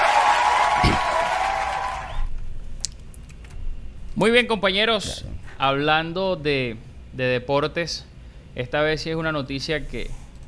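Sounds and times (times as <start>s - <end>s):
applause: 0.0s - 2.3s
speech: 4.2s - 10.2s.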